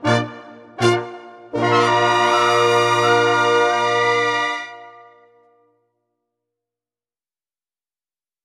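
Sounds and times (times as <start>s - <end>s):
brass instruments: 0.0s - 5.7s.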